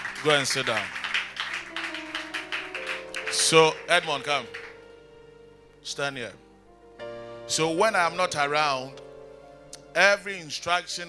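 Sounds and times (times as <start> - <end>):
audience clapping in a steady rapid rhythm: 0.0 - 4.9
speech: 0.2 - 1.0, 3.4 - 4.6, 5.8 - 6.4, 7.5 - 9.0, 10.0 - 11.0.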